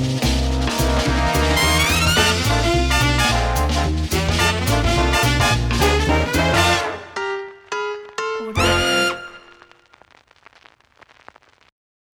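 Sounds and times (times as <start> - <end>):
hipster big band logo jingle: 0.0 - 7.5, 8.2 - 9.7.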